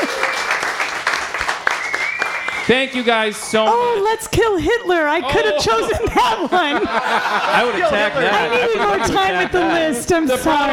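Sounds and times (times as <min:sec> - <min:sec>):
audience applause at a live evening show: 0:00.0 - 0:03.7
speech: 0:02.7 - 0:10.7
laughter: 0:04.7 - 0:10.7.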